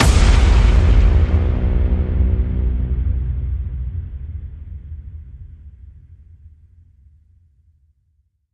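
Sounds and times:
big hit: 0.0 - 6.2.

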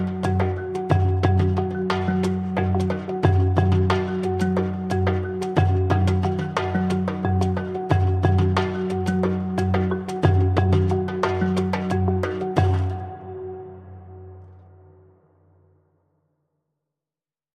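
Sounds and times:
ocean drums: 0.0 - 13.7
marimba: 0.0 - 15.0.

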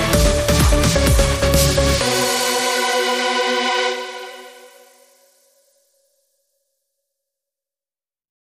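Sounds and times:
boosted bass: 0.0 - 4.5.

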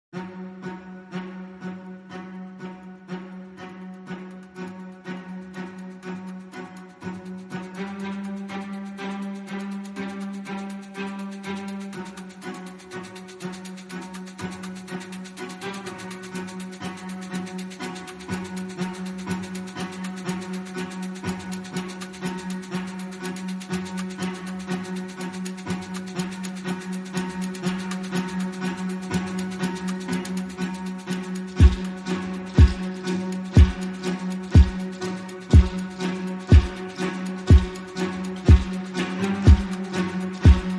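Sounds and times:
strings: 0.0 - 40.7
drums: 36.5 - 36.8.

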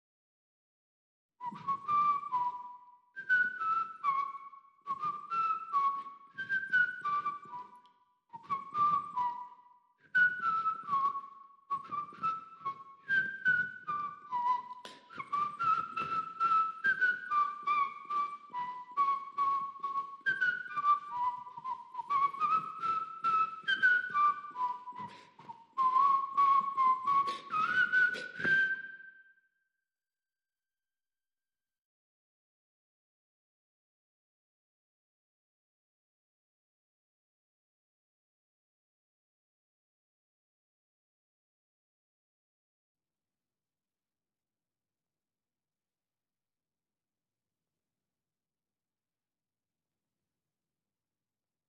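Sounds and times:
clean whistle: 1.4 - 29.7.

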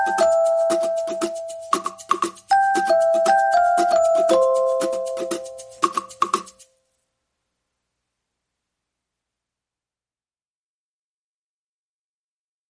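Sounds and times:
melody: 0.0 - 6.6
percussion: 0.0 - 6.7.

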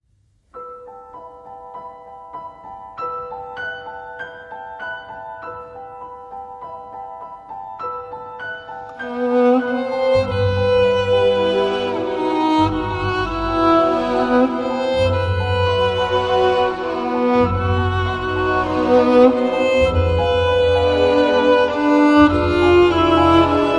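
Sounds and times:
violin melody: 8.8 - 23.7.

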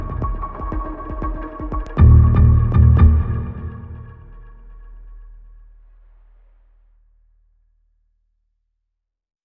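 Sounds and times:
morse code bass tones: 2.0 - 4.1.

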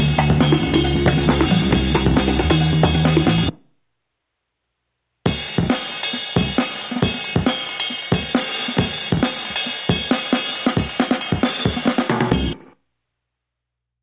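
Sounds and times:
drums: 0.0 - 3.6, 5.2 - 12.8
bass: 0.0 - 3.7, 5.3 - 12.8.

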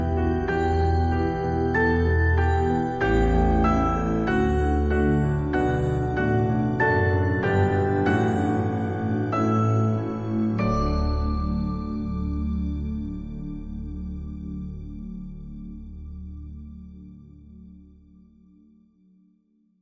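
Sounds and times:
Norwegian Christmas song: 0.0 - 14.9.

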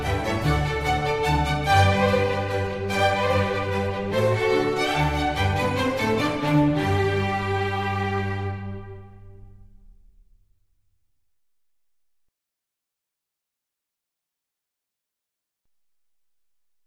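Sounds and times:
concerto for strings in G major: 0.0 - 9.6.

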